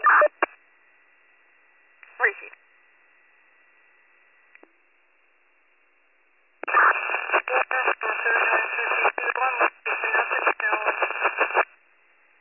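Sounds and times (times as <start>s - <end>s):
static-filled radio transmission: 0.0s - 0.5s, 6.6s - 11.7s.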